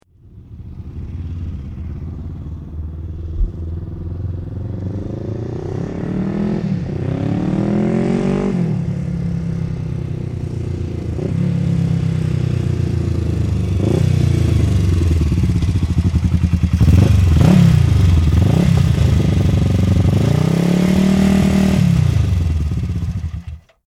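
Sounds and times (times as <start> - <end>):
Ducati 350 motorbike driving up and stopping: 0.1 - 23.8.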